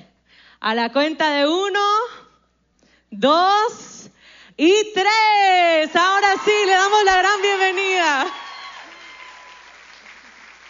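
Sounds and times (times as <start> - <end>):
speech: 0.6 - 2.2, 3.1 - 4.0, 4.6 - 8.4
audience applause: 6.3 - 10.6.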